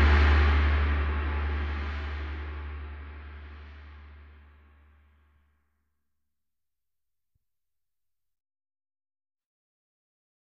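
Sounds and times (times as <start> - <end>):
tamtam: 0.0 - 4.3.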